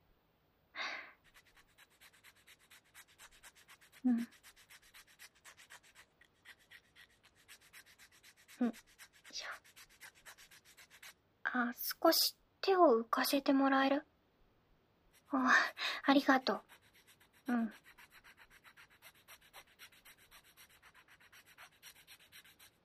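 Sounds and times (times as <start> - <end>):
file rasping back and forth: 1.2 - 11.2, 16.2 - 22.8
speech: 4.0 - 4.4, 8.6 - 8.9, 11.6 - 14.1, 15.3 - 16.7, 17.5 - 17.8.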